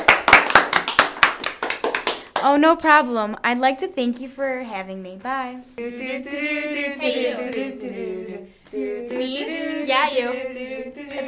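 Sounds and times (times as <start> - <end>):
audience applause: 0.0 - 2.2
speech: 2.4 - 11.2.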